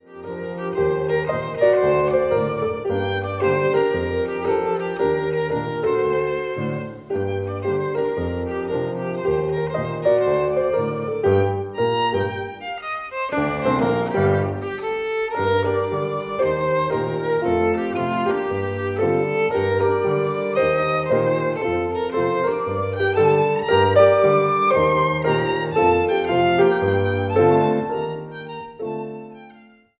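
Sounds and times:
violin: 0.0s - 29.9s.

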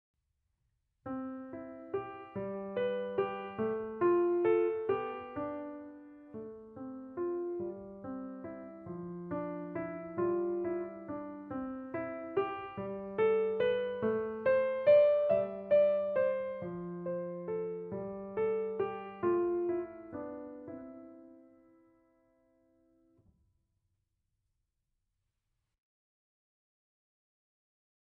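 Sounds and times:
piano: 1.0s - 23.4s.

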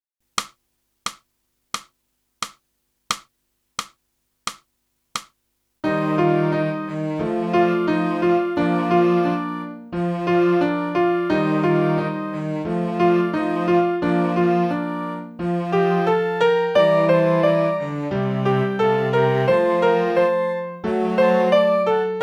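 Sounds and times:
saxophone: 5.8s - 22.2s.

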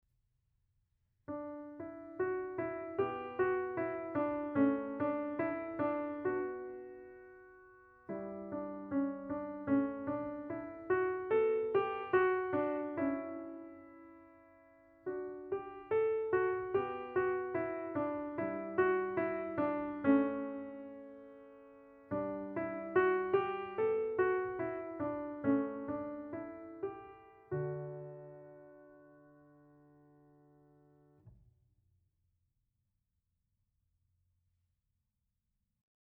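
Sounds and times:
piano: 1.3s - 31.4s.

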